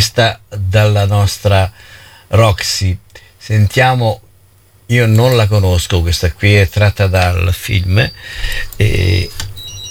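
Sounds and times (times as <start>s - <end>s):
speech: 0.0s - 4.2s, 4.9s - 9.5s
telephone ringing with electronic trill: 6.9s - 9.8s.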